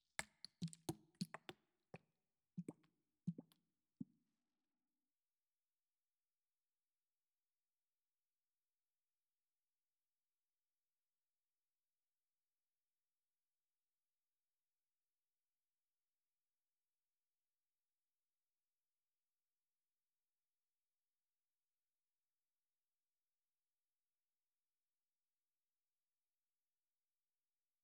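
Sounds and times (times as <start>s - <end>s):
slippery lotion squelching ASMR: 0.0s - 1.6s, 2.6s - 3.6s.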